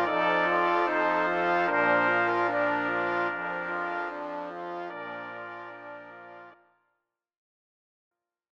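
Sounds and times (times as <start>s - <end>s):
brass quintet playing: 0.0s - 6.6s.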